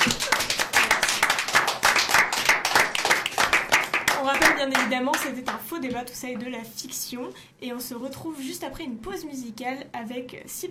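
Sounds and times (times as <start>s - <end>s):
audience applause: 0.0s - 4.9s
speech: 4.6s - 10.7s.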